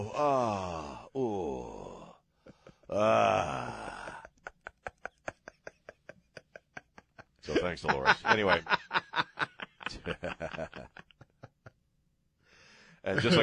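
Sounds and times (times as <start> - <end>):
speech: 0.0 - 1.8, 2.9 - 3.8, 7.6 - 9.0, 10.0 - 11.0, 13.0 - 13.4
person imitating their own groaning during a neck shave: 0.0 - 2.2, 2.8 - 4.5
laughter: 2.5 - 11.8, 13.1 - 13.4.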